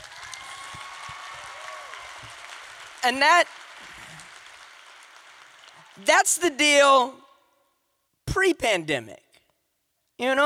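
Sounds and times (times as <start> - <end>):
audience round of applause: 0.0 - 6.5
speech: 3.0 - 3.6, 6.0 - 7.2, 8.4 - 9.2, 10.2 - 10.4.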